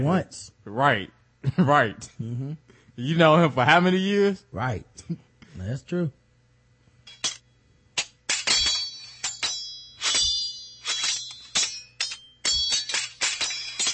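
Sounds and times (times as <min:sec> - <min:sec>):
speech: 0:00.0 - 0:06.2
sword blades clashing and clinking: 0:07.1 - 0:13.9.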